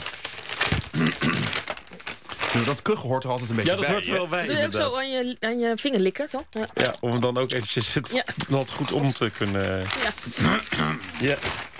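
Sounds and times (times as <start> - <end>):
newspaper pages being leafed through: 0.0 - 4.0, 8.4 - 11.7
speech: 2.6 - 11.7.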